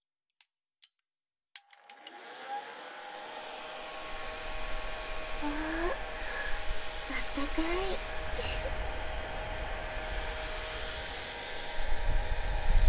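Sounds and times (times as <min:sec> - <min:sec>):
hair dryer switch clicks: 0:01.6 - 0:02.2
hair dryer drying hair: 0:01.9 - 0:12.8.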